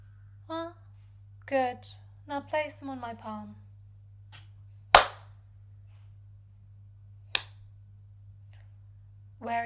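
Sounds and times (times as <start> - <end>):
low steady hum: 0.0 - 9.6
speech: 1.5 - 3.6, 9.4 - 9.6
slaps across the face: 4.4 - 5.3.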